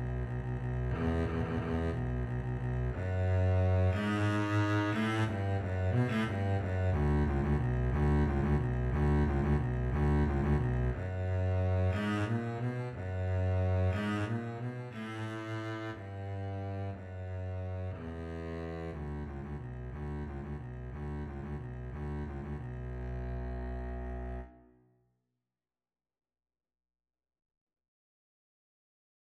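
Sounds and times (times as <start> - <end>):
double bass in a violin-bass duet: 0.0 - 24.6
violin in a violin-bass duet: 0.0 - 24.7.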